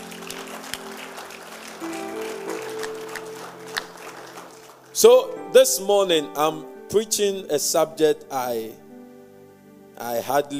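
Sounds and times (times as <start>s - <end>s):
audience clapping: 0.0s - 5.4s
sustained keyboard notes: 0.0s - 10.5s
speech: 5.0s - 8.8s, 10.0s - 10.5s.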